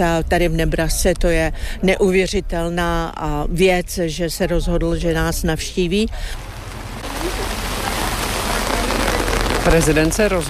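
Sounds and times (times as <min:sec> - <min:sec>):
speech: 0:00.0 - 0:06.5, 0:09.6 - 0:10.4
rain falling outdoors: 0:05.8 - 0:10.4.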